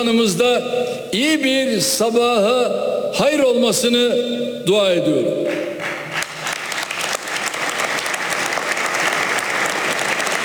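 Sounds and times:
speech: 0.0s - 5.8s
applause from a large crowd in parliament: 5.8s - 10.4s.

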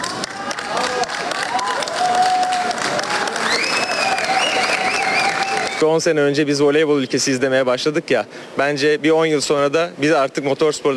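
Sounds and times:
cheering and whistles: 0.0s - 5.8s
crowd applauding at an airport: 0.0s - 5.8s
speech: 5.8s - 10.9s.

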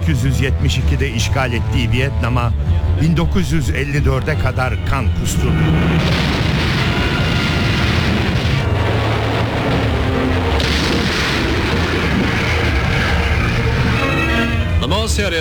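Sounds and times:
speech: 0.1s - 6.5s, 15.1s - 15.3s
artillery bombardment in the Indochina war: 5.4s - 14.2s.

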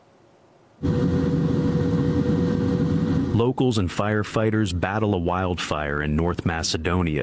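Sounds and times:
helicopter flying: 0.8s - 3.4s
speech: 3.4s - 7.2s.

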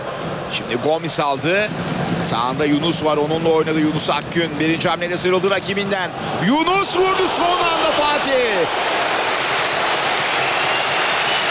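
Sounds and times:
speech: 0.5s - 9.0s
large stadium crowd applauding and cheering a shot: 6.4s - 11.4s.

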